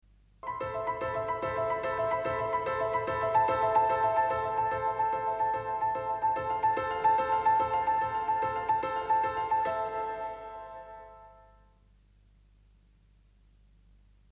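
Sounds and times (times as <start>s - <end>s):
piano: 0.4s - 11.9s.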